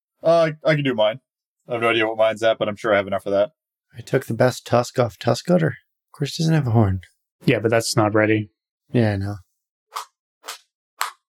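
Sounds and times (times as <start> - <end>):
speech: 0.2 - 10.1
knuckles cracking: 9.9 - 11.3.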